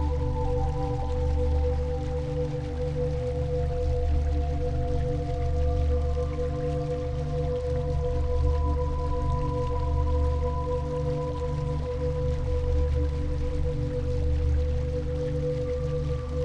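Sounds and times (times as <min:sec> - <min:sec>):
flowing water stream: 0:00.0 - 0:16.4.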